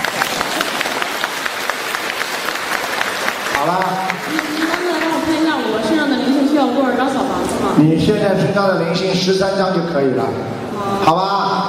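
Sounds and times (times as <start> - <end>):
audience applause: 0.0 - 6.3
speech: 3.6 - 4.6, 6.7 - 11.4.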